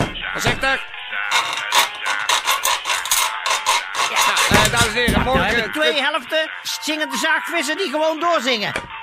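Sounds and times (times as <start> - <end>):
speech: 0.4 - 0.9, 5.0 - 9.0
sawing through an object: 1.3 - 5.7.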